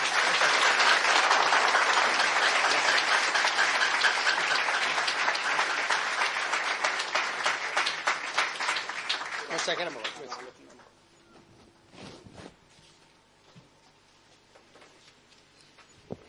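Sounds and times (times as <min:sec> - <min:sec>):
audience applause at a Congress 60 group meeting: 0:00.0 - 0:10.8.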